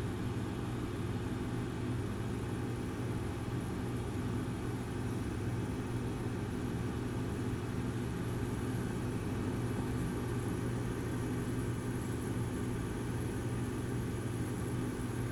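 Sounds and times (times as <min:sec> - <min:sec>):
bathroom fan: 0:00.0 - 0:15.3.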